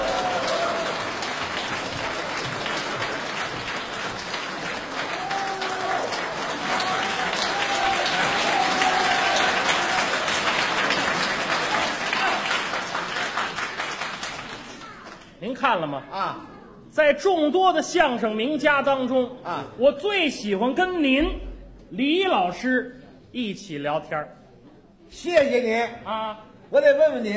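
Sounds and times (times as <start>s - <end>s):
audience applause welcoming performers: 0.0s - 15.2s
speech: 15.7s - 24.4s, 25.1s - 27.3s.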